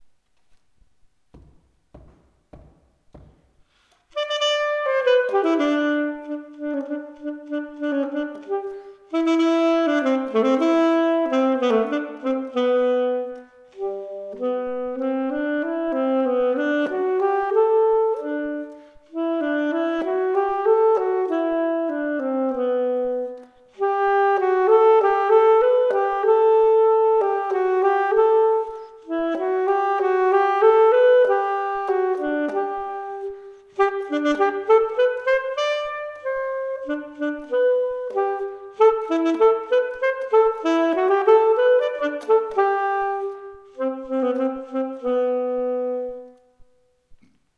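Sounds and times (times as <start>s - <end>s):
Austrian polka saxophone duet: 4.1s - 46.5s.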